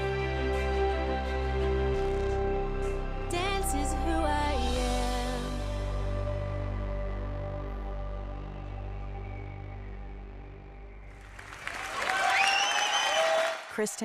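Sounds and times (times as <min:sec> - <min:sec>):
sustained music tones after a dance performance: 0:00.0 - 0:11.8
audience applause after a dance performance on stage: 0:11.1 - 0:14.0
speech: 0:13.8 - 0:14.0.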